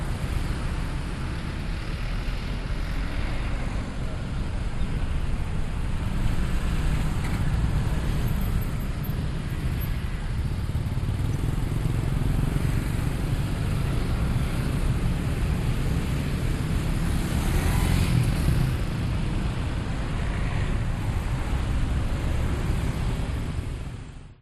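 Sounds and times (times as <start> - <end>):
motorcycles at the Ubud palace main intersection in Indonesia: 0.0 - 24.4
traffic at the Ubud palace main intersection in Indonesia: 0.0 - 24.4.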